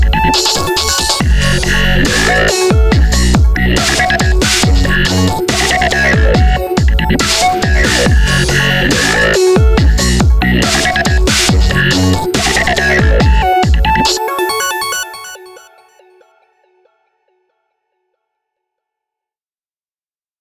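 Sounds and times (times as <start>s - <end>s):
vocoder bass intro: 0.0s - 14.2s.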